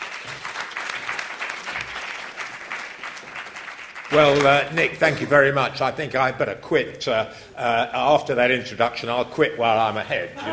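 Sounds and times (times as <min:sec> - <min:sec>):
audience applause welcoming a speaker at a creative industries talk: 0:00.0 - 0:05.2
speech: 0:04.1 - 0:10.5.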